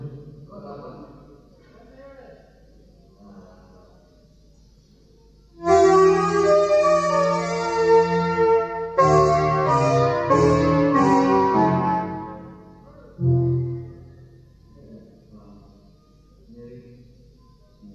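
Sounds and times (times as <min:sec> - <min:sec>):
instrumental music: 0:05.5 - 0:14.8.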